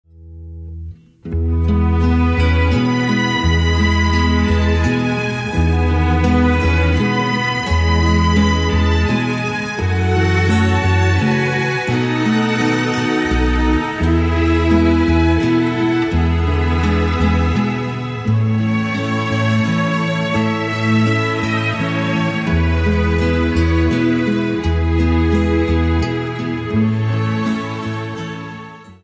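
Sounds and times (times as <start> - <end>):
instrumental music: 0.1 - 29.0.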